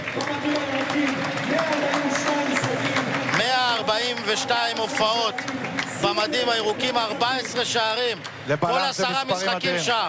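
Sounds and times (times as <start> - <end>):
stadium crowd applauding: 0.0 - 10.0
speech: 4.0 - 10.0.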